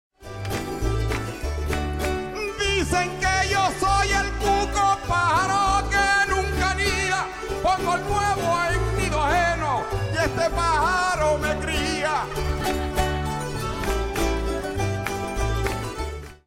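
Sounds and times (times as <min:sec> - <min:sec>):
folk polka music: 0:00.2 - 0:16.4.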